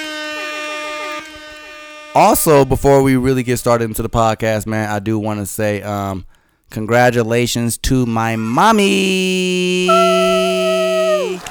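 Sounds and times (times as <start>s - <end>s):
air horns sound effect: 0.0s - 2.4s, 9.9s - 11.4s
speech: 2.1s - 10.7s.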